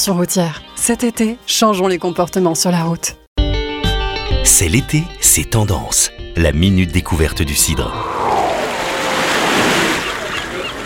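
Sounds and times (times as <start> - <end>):
speech: 0.0 - 3.2, 4.4 - 8.4
sea wind: 7.5 - 10.8
ocean surf: 7.9 - 10.8.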